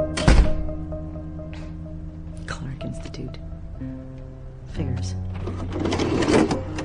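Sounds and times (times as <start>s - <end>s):
door being shut: 0.1s - 0.7s
speech: 2.8s - 4.1s, 4.7s - 6.7s.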